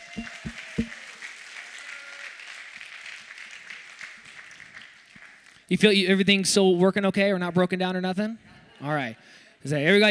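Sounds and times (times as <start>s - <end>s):
crowd applauding: 0.0s - 5.7s
speech: 5.7s - 10.0s.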